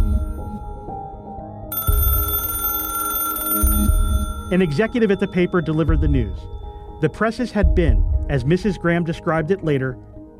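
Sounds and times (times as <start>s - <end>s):
telephone ringing: 1.7s - 7.0s
speech: 4.5s - 10.3s.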